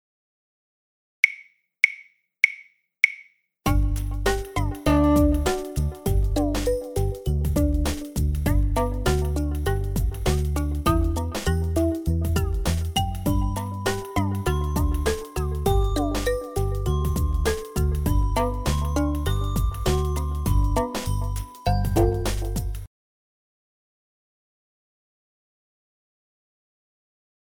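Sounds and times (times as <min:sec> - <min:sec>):
backing track: 0:03.7 - 0:22.9.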